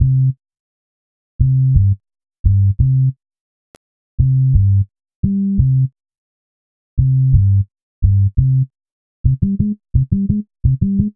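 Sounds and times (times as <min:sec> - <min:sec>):
synth bass: 0:00.0 - 0:00.4, 0:01.4 - 0:03.1, 0:04.2 - 0:05.9, 0:07.0 - 0:08.7, 0:09.3 - 0:11.1.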